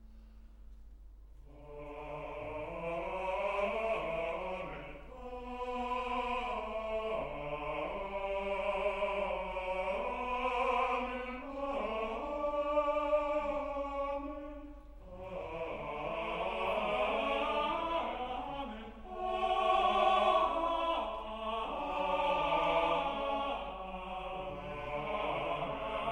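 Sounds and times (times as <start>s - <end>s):
choir singing amen: 1.4s - 26.1s.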